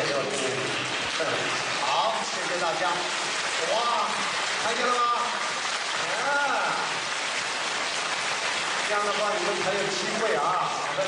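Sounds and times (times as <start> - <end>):
crowd applauding: 0.0 - 11.0
speech: 2.7 - 5.2, 8.9 - 11.0
rising-and-falling vocal cheer: 6.0 - 7.0.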